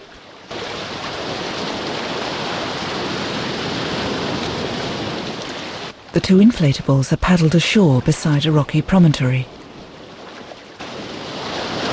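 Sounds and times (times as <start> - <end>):
water rushing as a submarine dives into the ocean depths: 0.0 - 11.9
speech: 6.2 - 9.6.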